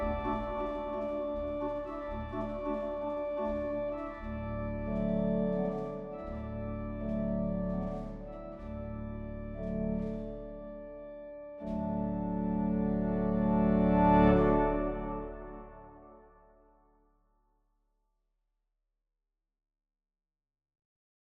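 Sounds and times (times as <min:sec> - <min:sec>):
organ playing: 0:00.0 - 0:16.4.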